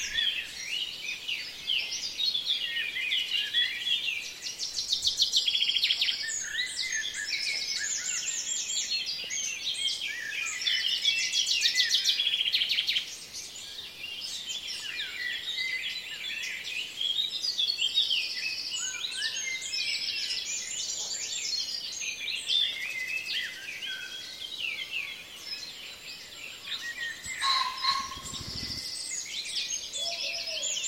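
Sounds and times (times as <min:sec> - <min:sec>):
birds in a dawn chorus: 0:00.0 - 0:30.8.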